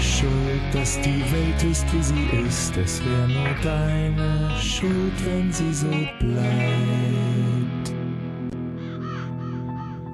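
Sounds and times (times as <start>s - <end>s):
speech: 0.2s - 7.4s
raven cawing: 8.6s - 10.1s.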